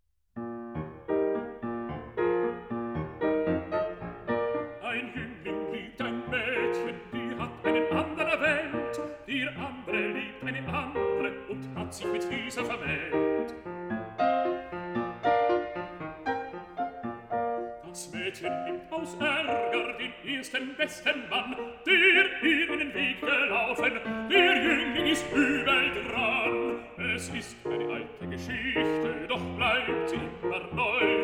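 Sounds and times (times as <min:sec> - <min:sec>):
piano: 0:00.4 - 0:31.2
person singing a song cycle: 0:04.8 - 0:13.6, 0:17.8 - 0:31.2.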